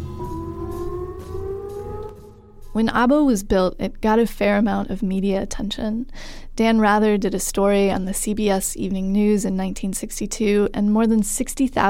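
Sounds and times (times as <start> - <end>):
civil defense air raid siren wailing: 0.0 - 3.1
speech: 2.8 - 11.8.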